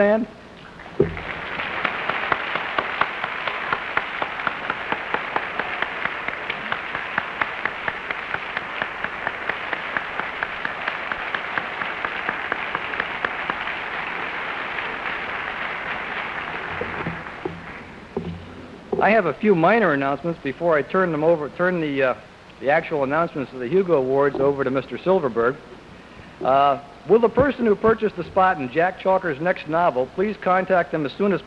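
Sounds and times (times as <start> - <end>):
speech: 0.0 - 0.4, 19.0 - 25.7, 26.4 - 31.4
convention audience round of applause: 1.0 - 19.2.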